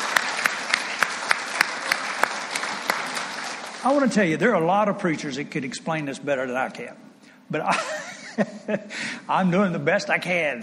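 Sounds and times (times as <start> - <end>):
audience applause: 0.0 - 4.1
speech: 3.8 - 10.6
laughter: 7.6 - 8.9.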